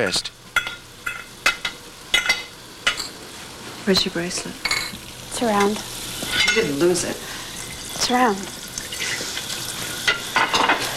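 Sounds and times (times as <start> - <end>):
speech: 0.0 - 0.4, 3.9 - 4.8, 5.4 - 5.9, 6.5 - 7.3, 8.1 - 8.6
dishes being washed at a kitchen sink: 0.6 - 3.2, 3.9 - 7.0, 10.0 - 10.9.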